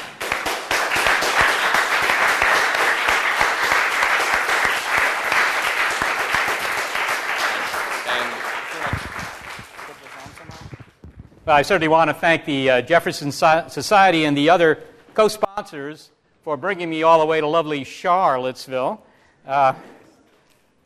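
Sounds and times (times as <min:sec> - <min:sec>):
audience applauding the speaker: 0:00.0 - 0:11.0
speech: 0:11.5 - 0:20.0.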